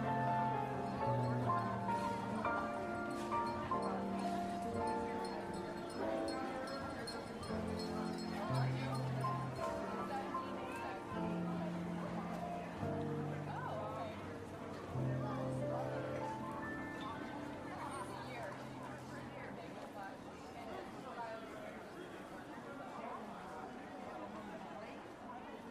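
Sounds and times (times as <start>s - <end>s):
holiday tunes on piano: 0.0s - 19.6s
murmur of market voices: 0.0s - 25.6s.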